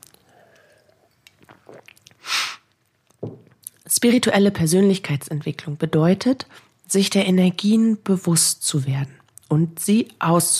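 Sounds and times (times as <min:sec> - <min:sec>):
person sipping water: 0:00.0 - 0:03.8
breathy hiss: 0:00.2 - 0:01.1, 0:02.2 - 0:02.7
speech: 0:04.0 - 0:10.5.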